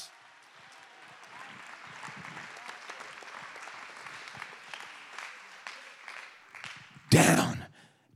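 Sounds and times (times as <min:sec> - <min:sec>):
audience clapping hands: 0:00.0 - 0:07.6.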